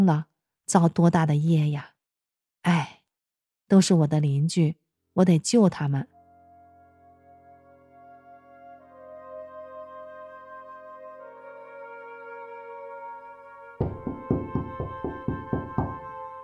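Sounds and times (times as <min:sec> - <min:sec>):
speech: 0:00.0 - 0:01.9, 0:02.6 - 0:03.0, 0:03.7 - 0:06.1
steady musical drone: 0:06.1 - 0:16.4
loud knocks on a door: 0:13.8 - 0:16.0.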